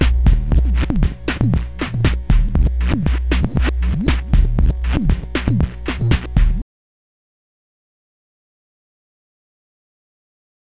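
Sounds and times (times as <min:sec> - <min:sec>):
simple beats with delay: 0:00.0 - 0:06.6.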